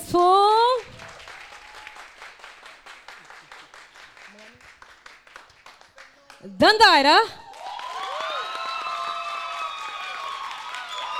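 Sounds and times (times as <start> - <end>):
speech: 0.1 - 0.4, 6.4 - 7.4
audience applause: 0.8 - 11.1.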